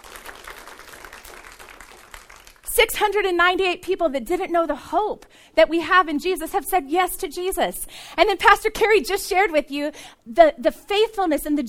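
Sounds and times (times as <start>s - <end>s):
audience hand clapping: 0.0s - 2.7s
speech: 2.8s - 11.6s.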